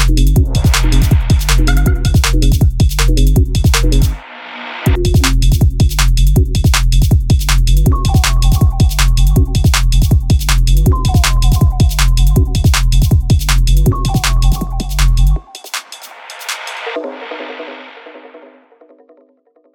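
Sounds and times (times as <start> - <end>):
drum beats: 0.0 - 4.2, 4.9 - 18.1.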